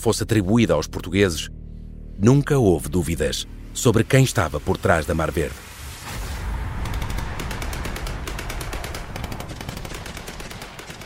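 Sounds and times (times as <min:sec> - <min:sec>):
speech: 0:00.0 - 0:01.6, 0:02.2 - 0:06.2
loud rumbling background: 0:00.0 - 0:11.0
gunfire in street fighting: 0:06.8 - 0:11.0.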